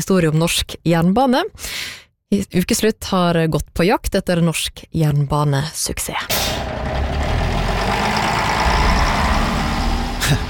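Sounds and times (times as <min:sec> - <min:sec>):
speech: 0:00.0 - 0:06.9
bus engine idling: 0:06.3 - 0:10.4.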